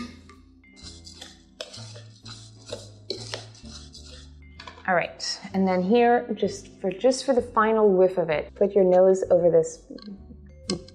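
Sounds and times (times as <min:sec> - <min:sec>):
utensil scraping and clinking against a bowl mixing breadcrumbs, cheese, fennel and orange zest: 0:00.8 - 0:04.9
speech: 0:04.9 - 0:10.3.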